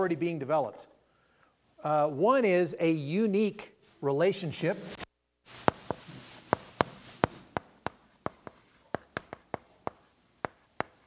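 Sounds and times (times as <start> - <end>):
speech: 0.0 - 0.9, 1.8 - 5.6
writing on a board during a church sermon: 5.6 - 11.0.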